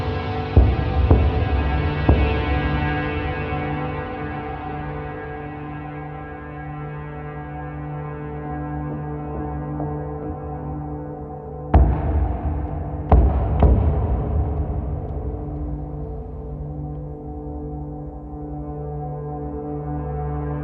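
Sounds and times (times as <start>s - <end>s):
percussion: 0.0s - 6.8s, 11.7s - 19.0s
ambient atmosphere: 0.0s - 20.6s.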